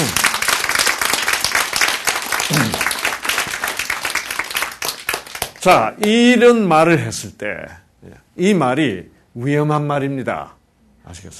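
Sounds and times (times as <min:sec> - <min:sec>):
audience applause: 0:00.0 - 0:05.9
speech: 0:05.6 - 0:11.3.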